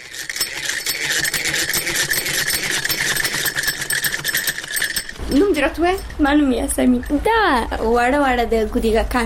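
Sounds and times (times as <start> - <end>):
sewing machine running in a tailoring course class in Khushal Khan, Kabul: 0.0 - 5.2
speech: 5.3 - 9.2.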